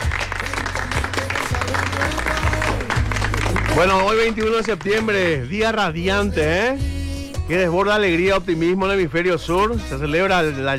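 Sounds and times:
crowd applause: 0.0 - 5.4
low thumping musical bed: 0.0 - 10.7
speech: 3.8 - 6.9, 7.5 - 10.7.

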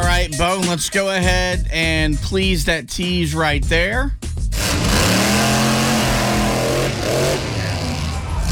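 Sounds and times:
speech: 0.2 - 4.3
monster truck engine revving: 4.5 - 8.4.

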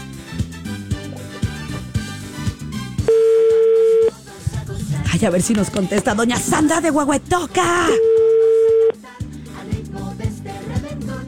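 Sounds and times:
rhythmic music: 0.0 - 11.2
ringback tone of a telephone call being placed: 3.1 - 4.1, 7.8 - 9.0
speech: 5.2 - 8.1.

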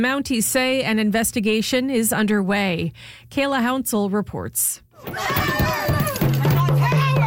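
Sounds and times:
speech: 0.0 - 6.1
angry protesters shouting as they swarm the Nova Scotia Premier's car: 5.0 - 7.2.

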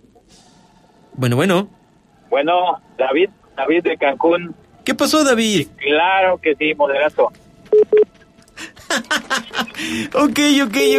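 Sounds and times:
speech: 1.2 - 8.0, 9.8 - 10.9
call-waiting tone signalling another incoming phone call: 7.7 - 8.1, 10.8 - 10.9
laughter: 8.6 - 10.4.

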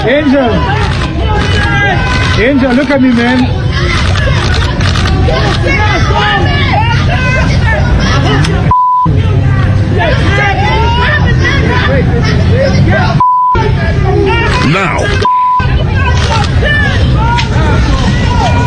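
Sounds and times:
low traffic rumble: 0.0 - 18.6
street crowd murmuring and shouting: 0.0 - 18.6
speech: 0.1 - 0.8, 2.4 - 4.5, 5.2 - 7.5, 12.0 - 15.4, 16.6 - 18.6
short mid-pitched beeps: 8.7 - 9.1, 13.2 - 13.6, 15.2 - 15.7.

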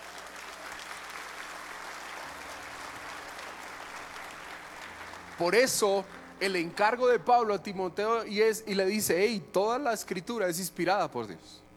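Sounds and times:
audience applause: 0.0 - 6.4
speech: 5.4 - 11.6.

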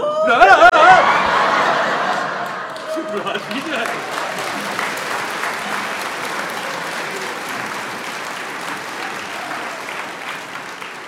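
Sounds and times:
voices: 0.0 - 11.0
scattered laughter: 0.3 - 7.4
audience applause: 0.5 - 11.0.

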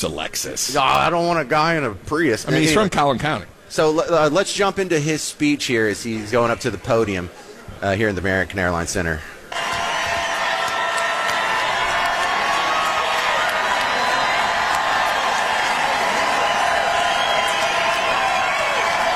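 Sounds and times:
speech: 0.0 - 9.6
arena crowd cheering and applauding: 9.5 - 19.1.

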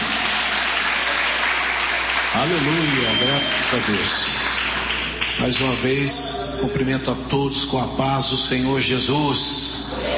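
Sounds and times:
congregation clapping during a worship hymn: 0.0 - 6.3
speech: 2.3 - 4.5, 5.4 - 10.1.

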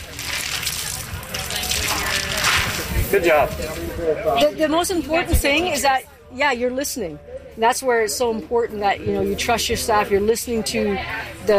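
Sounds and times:
running water splashing as hands are washed: 0.0 - 3.8
speech: 3.1 - 11.5.

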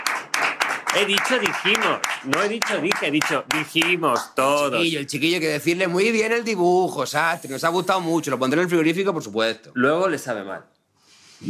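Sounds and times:
applause: 0.0 - 4.3
speech: 0.9 - 10.7.

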